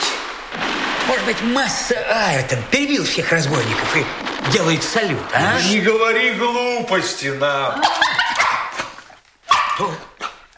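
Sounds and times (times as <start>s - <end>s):
speech: 1.1s - 8.2s, 9.8s - 10.1s
dog barking: 7.8s - 8.9s, 9.5s - 10.1s.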